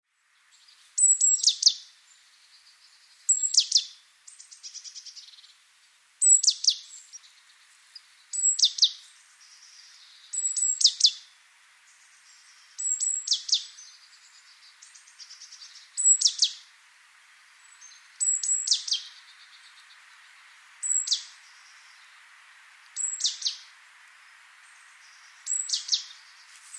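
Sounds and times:
low hiss: 0.1s - 26.7s
great tit calls: 1.0s - 1.8s, 3.3s - 5.5s, 6.2s - 11.3s, 11.9s - 16.7s, 17.7s - 22.2s, 22.8s - 26.7s.

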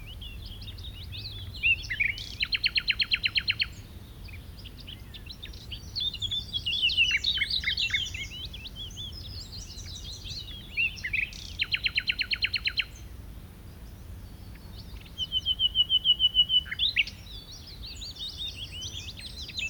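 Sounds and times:
common nightingale song: 0.0s - 19.6s.

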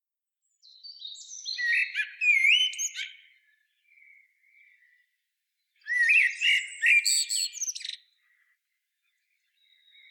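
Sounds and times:
common blackbird song: 0.4s - 10.0s.

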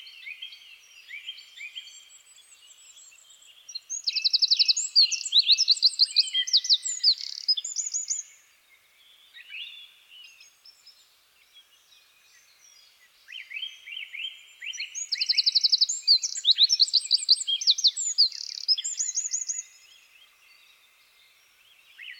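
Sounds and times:
Eurasian wren singing: 1.1s - 8.4s, 12.3s - 20.2s.

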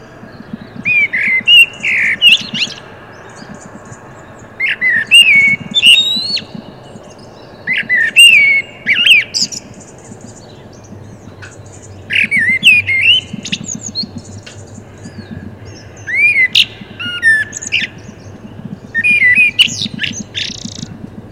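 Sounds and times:
Common blackbird singing: 0.0s - 21.3s.

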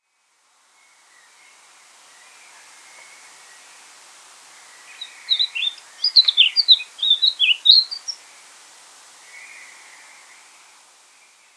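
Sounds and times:
steady background hiss: 0.0s - 11.5s
Eurasian blackcap warbling: 5.3s - 8.2s.

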